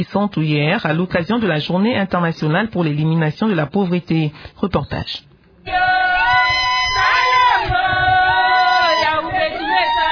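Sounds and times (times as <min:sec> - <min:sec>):
speech: 0:00.0 - 0:05.9
about twenty women singing a welcoming chant in fields near Kisantu: 0:05.6 - 0:10.1.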